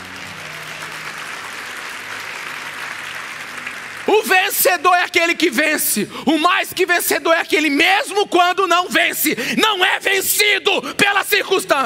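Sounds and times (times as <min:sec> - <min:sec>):
audience applause: 0:00.0 - 0:05.6
speech: 0:04.1 - 0:11.8.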